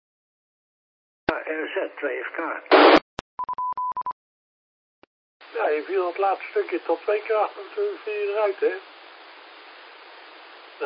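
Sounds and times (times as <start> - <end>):
speech: 1.5 - 3.0, 5.5 - 9.0
radio static burst: 2.7 - 3.0, 5.5 - 10.8.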